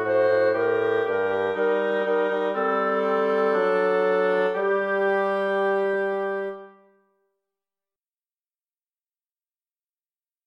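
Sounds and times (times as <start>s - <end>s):
oboe: 0.0s - 6.9s
bassoon: 0.0s - 7.0s
clarinet: 0.0s - 7.1s.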